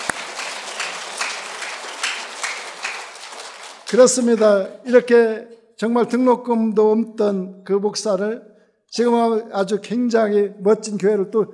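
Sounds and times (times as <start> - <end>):
audience applause: 0.0 - 4.6
speech: 3.9 - 11.5.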